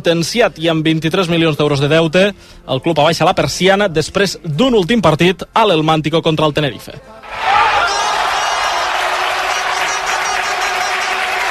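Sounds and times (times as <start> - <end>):
speech: 0.0 - 7.6
stadium crowd at El Helmántico in Salamanca cheering a goal: 7.2 - 11.4.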